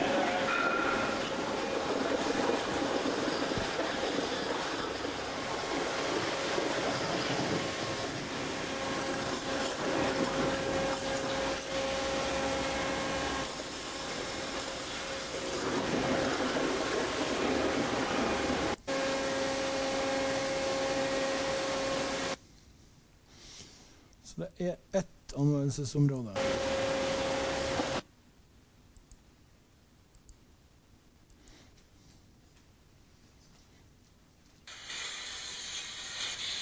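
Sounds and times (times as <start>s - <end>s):
three water jet cutters cutting insulation material: 0.0s - 22.4s, 26.4s - 28.0s, 34.7s - 36.6s
speech: 24.4s - 25.1s, 25.8s - 26.7s.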